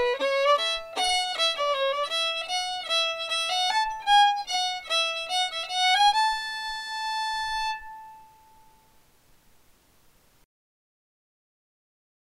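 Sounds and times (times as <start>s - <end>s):
fiddle: 0.0s - 8.9s.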